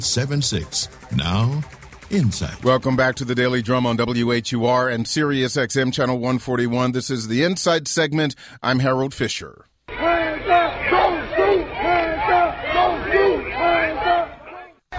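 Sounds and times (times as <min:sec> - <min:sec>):
speech: 0:00.0 - 0:09.7
protest crowd chanting in Ferguson, Missouri: 0:09.9 - 0:14.8.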